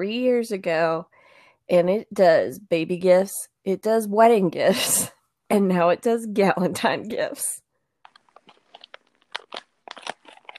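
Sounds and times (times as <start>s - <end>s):
speech: 0.0s - 7.6s
soft scratchy handling noises: 8.0s - 10.5s
wrapping paper being unwrapped: 8.0s - 10.5s.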